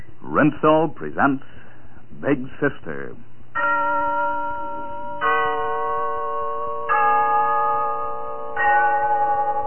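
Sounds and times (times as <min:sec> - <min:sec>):
speech: 0:00.4 - 0:01.6, 0:02.2 - 0:03.3
Glen Falls Town Hall clock bell chiming: 0:03.6 - 0:09.6.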